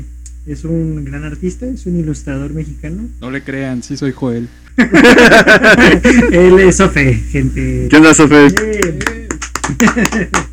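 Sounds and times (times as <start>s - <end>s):
speech: 0.5s - 9.2s, 9.8s - 10.5s
laughter: 4.8s - 6.6s, 8.8s - 10.5s
hand clapping: 8.4s - 10.5s.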